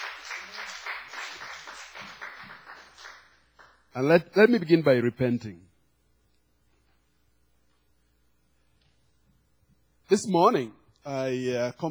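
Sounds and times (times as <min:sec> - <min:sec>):
audience applause: 0:00.0 - 0:03.9
speech: 0:04.0 - 0:05.7, 0:10.1 - 0:11.8.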